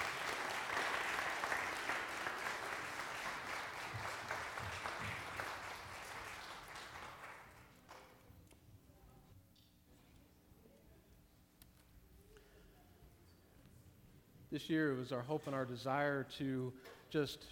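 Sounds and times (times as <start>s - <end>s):
crowd clapping: 0.0s - 8.0s
speech: 14.5s - 17.4s.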